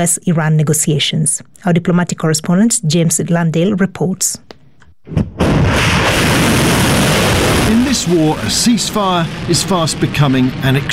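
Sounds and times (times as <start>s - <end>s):
speech: 0.0s - 7.1s, 7.7s - 10.9s
missiles launching at a US base: 5.1s - 10.9s.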